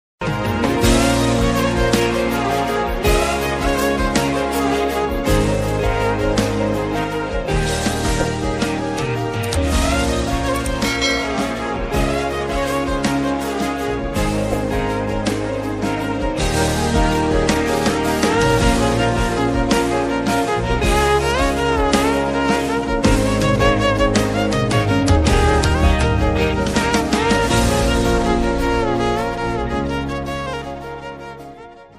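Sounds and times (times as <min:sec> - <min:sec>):
background music ringtone: 0:00.2 - 0:31.9.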